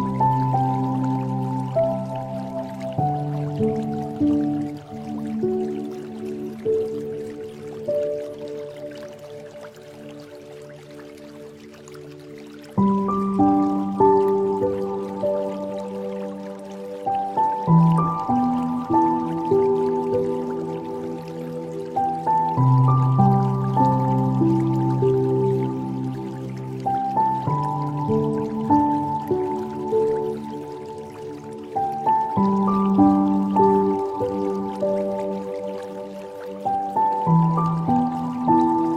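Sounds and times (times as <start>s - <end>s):
flowing water trickling: 0.0s - 38.9s
slow piano chords: 0.0s - 38.9s.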